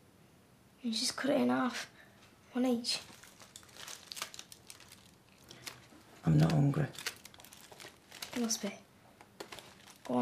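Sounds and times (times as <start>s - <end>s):
speech: 0.8s - 2.0s, 2.6s - 3.2s, 6.2s - 7.0s, 8.4s - 8.8s, 10.1s - 10.2s
foil wrapping on a warm cheese, tomato and bacon sandwich crinkling: 2.9s - 10.2s.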